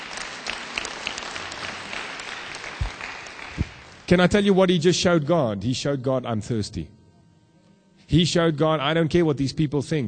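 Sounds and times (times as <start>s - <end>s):
church congregation applause: 0.0s - 4.1s
speech: 4.1s - 7.0s, 8.1s - 10.0s.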